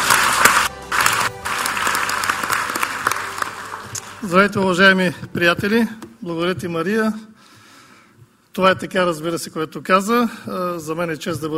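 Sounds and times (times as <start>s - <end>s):
crowd applauding: 0.0s - 4.7s
speech: 4.2s - 7.3s, 8.6s - 11.5s.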